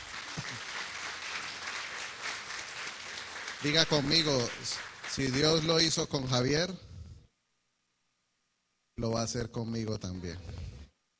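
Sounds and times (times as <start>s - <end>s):
audience applause: 0.0s - 6.0s
speech: 3.6s - 6.9s, 9.0s - 10.6s.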